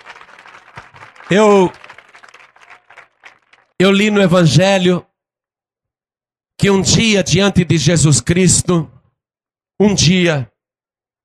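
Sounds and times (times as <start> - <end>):
audience applauding: 0.0 - 3.8
speech: 1.3 - 1.8, 3.8 - 5.1, 6.6 - 9.0, 9.8 - 10.5.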